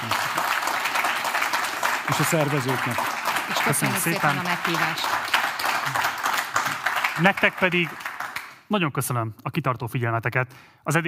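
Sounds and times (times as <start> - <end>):
audience applause: 0.0 - 8.6
speech: 2.1 - 6.0, 7.2 - 8.0, 8.7 - 11.0.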